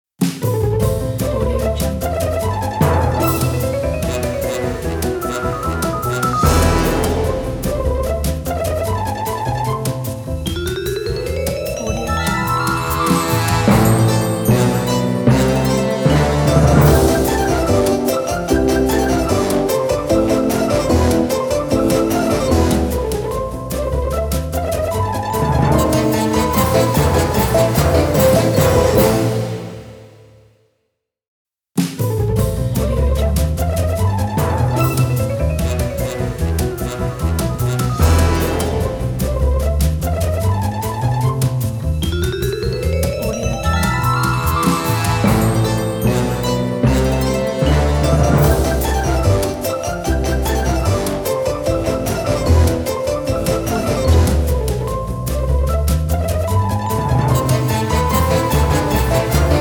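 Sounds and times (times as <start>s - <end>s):
funny march music: 0.2s - 30.2s, 32.3s - 59.5s.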